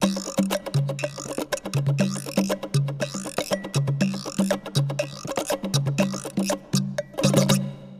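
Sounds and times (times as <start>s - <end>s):
percussion: 0.0s - 7.9s.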